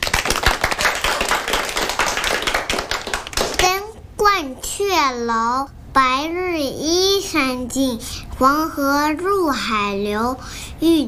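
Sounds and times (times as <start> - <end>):
crowd clapping: 0.0 - 3.7
speech: 4.8 - 11.0.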